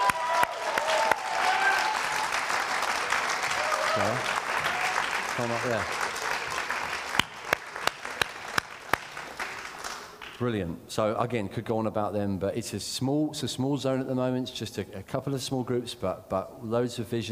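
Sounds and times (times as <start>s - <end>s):
audience clapping: 0.0s - 10.5s
speech: 4.0s - 4.4s, 5.4s - 6.0s, 10.4s - 17.2s.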